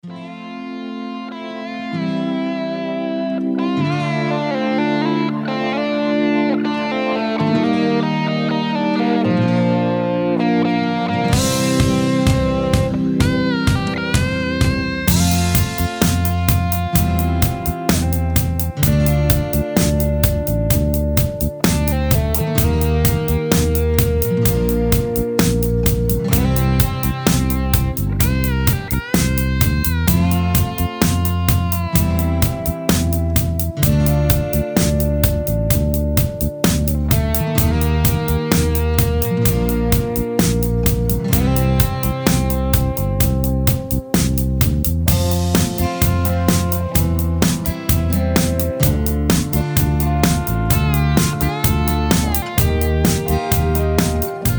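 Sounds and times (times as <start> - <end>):
instrumental low lead solo: 0.0 - 54.5.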